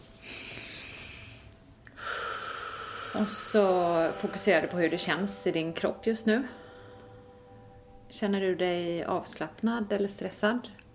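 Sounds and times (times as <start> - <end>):
deep breath taken during a guided mindful-eating exercise: 0.2 - 4.6, 6.5 - 7.4
speech: 3.1 - 6.6, 8.2 - 10.8.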